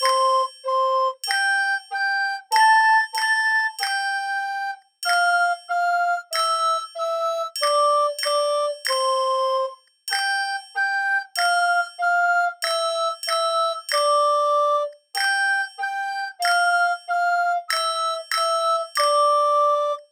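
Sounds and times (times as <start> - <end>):
nursery rhyme melody on recorder: 0.0 - 20.0
triangle: 0.0 - 20.0.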